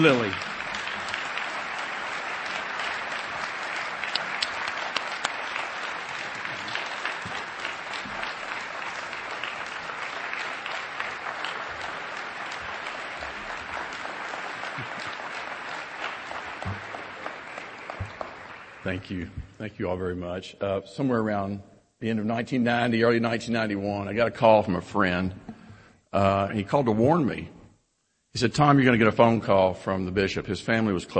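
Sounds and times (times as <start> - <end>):
speech: 0.0 - 0.5, 18.9 - 25.4, 26.1 - 27.6, 28.4 - 31.1
audience applause: 0.0 - 19.5.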